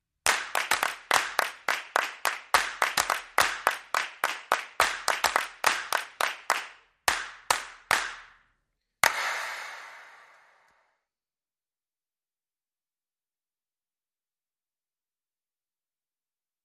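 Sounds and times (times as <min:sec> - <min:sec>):
hands clapping: 0:00.2 - 0:10.8.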